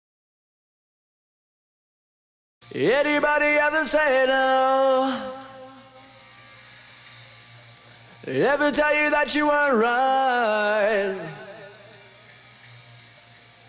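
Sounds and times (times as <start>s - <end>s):
person singing: 2.7s - 6.2s, 8.2s - 12.2s.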